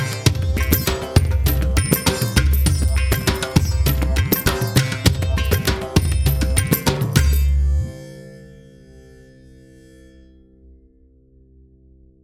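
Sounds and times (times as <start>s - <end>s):
Indian beat with reverb: 0.0s - 8.1s.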